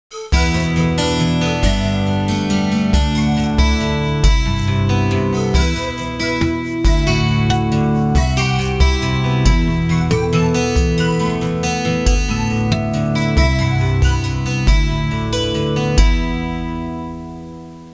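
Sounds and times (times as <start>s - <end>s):
Hawaiian music ringtone: 0.1s - 16.8s.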